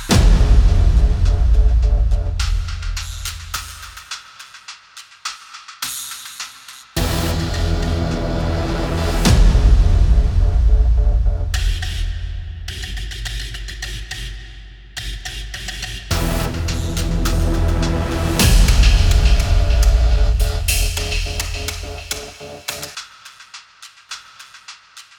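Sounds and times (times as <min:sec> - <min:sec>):
intro music: 0:00.1 - 0:03.9, 0:07.0 - 0:12.8, 0:16.1 - 0:22.9.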